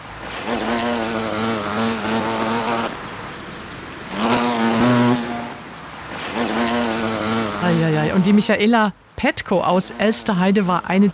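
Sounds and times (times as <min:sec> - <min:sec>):
large insect wings buzzing: 0:00.0 - 0:08.5
speech: 0:07.8 - 0:11.1.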